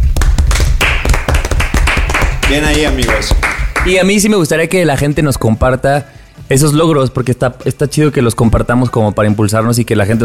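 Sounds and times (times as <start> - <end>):
short burst of applause from a few people: 0.1 - 4.1
speech: 2.5 - 10.2.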